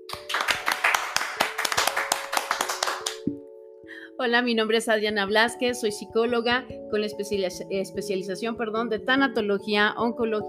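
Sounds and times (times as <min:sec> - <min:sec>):
applause: 0:00.0 - 0:03.3
speech: 0:04.2 - 0:10.4.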